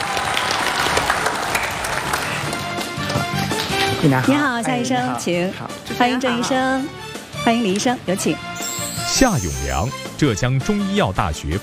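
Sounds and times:
studio audience applause: 0.0 - 3.7
speech: 4.0 - 8.5, 9.1 - 11.6.

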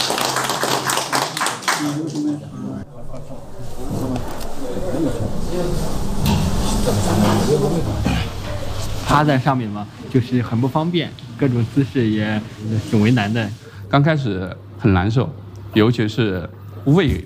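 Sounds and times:
meeting participants clapping: 0.0 - 2.8
busy voices: 2.4 - 13.9
speech: 9.1 - 17.2.

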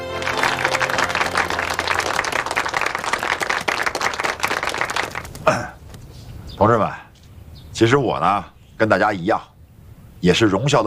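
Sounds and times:
audience applause: 0.0 - 5.6
speech: 6.6 - 7.0, 7.8 - 9.5, 10.2 - 10.8.

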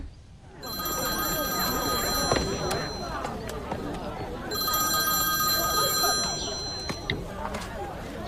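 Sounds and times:
telephone ringing during outgoing call: 0.6 - 7.5.

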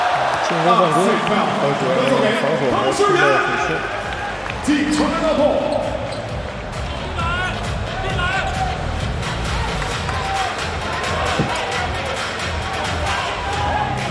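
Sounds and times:
arena crowd cheering for the Chinese men's basketball team: 0.0 - 14.0
speech: 0.5 - 5.9
sneakers squeaking on a basketball court: 4.8 - 7.8, 10.0 - 12.4.

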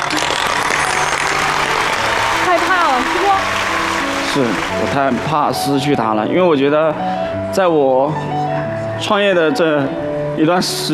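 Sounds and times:
audience applause: 0.0 - 6.2
speech: 4.4 - 10.9.

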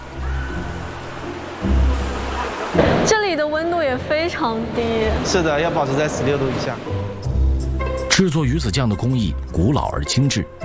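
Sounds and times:
water rushing through a pipe flushing a sturgeon: 0.0 - 6.7
speech: 2.8 - 7.1, 8.2 - 10.6.

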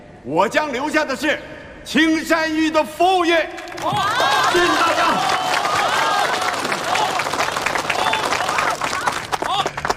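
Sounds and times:
speech: 0.2 - 5.4
audience applause: 3.7 - 9.9.

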